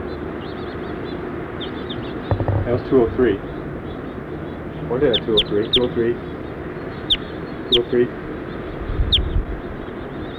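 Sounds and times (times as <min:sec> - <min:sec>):
house finches chirping: 0:00.1 - 0:10.3
speech: 0:02.7 - 0:03.5, 0:04.9 - 0:06.3, 0:07.7 - 0:08.2.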